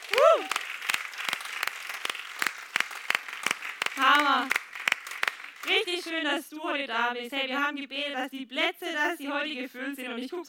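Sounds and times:
audience applause for the worship team: 0.0 - 5.9
speech: 5.8 - 10.4.

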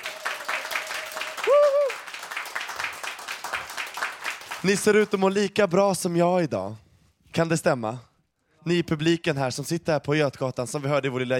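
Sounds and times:
audience applause: 0.0 - 5.1
speech: 4.6 - 6.8, 7.4 - 11.3.

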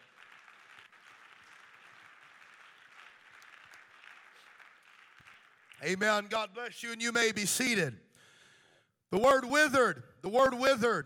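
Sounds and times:
audience clapping hands: 0.0 - 6.4
speech: 5.8 - 8.0, 9.1 - 11.0.

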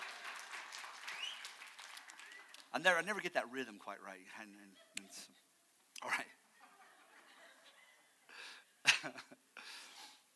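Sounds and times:
crowd clapping: 0.0 - 3.4
speech: 2.8 - 6.4, 9.0 - 9.4
laughter: 4.5 - 5.4, 6.0 - 9.4.

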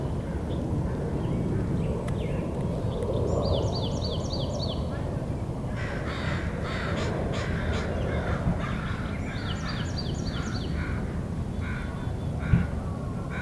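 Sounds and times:
bright chirping birdsong: 0.0 - 13.4
crows cawing at Magnuson Park in Seattle: 5.7 - 13.4.

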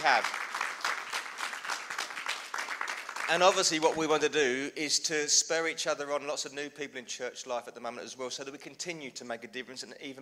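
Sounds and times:
speech: 0.0 - 0.5, 3.3 - 10.2
round of applause: 0.0 - 4.1.

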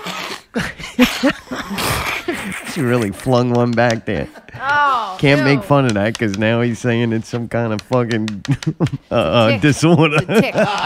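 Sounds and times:
person sniffing: 0.0 - 0.8, 1.6 - 3.4
laughter: 0.4 - 5.5, 8.0 - 10.8
speech: 0.6 - 1.4, 2.8 - 10.8.

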